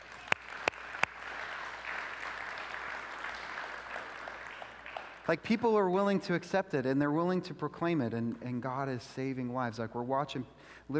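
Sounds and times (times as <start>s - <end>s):
audience applause: 0.0s - 5.3s
sharp loud claps: 0.0s - 5.4s
speech: 5.3s - 10.9s.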